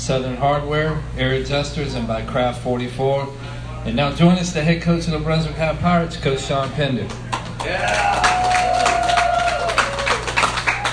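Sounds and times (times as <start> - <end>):
speech: 0.0 - 8.5
scattered sharp claps: 7.0 - 10.9
long sustained shout: 7.6 - 10.4
crowd cheering after a football victory: 7.6 - 10.9.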